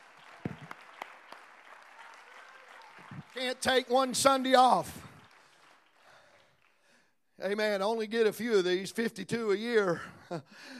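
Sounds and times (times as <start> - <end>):
audience clapping hands in praise: 0.0 - 7.6
speech: 3.4 - 5.0, 7.4 - 10.7.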